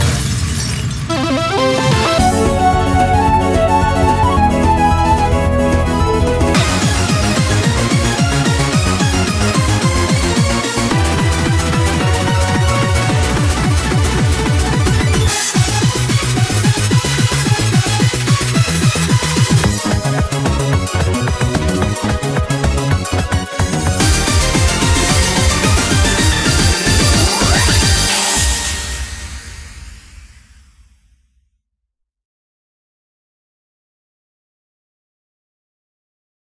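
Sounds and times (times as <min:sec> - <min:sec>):
bass: 0:00.0 - 0:28.9.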